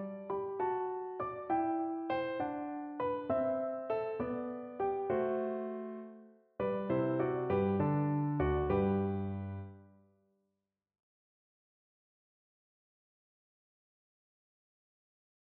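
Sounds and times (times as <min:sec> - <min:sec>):
pastorale piano piece: 0:00.0 - 0:10.0.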